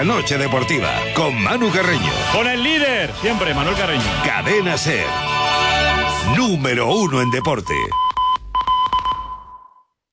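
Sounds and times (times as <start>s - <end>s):
speech: 0.0s - 8.1s
home security alarm beeping: 6.9s - 9.9s.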